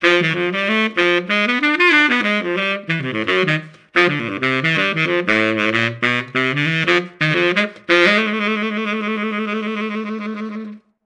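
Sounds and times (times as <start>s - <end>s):
tuba: 0.0s - 10.8s.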